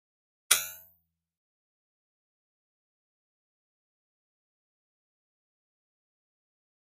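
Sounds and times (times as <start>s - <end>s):
button toy drum hit: 0.5s - 0.9s.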